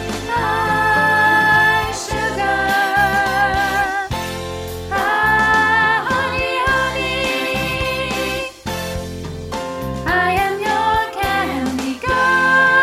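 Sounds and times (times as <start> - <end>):
soprano singing: 0.2 - 4.2, 4.9 - 8.6, 10.1 - 12.8.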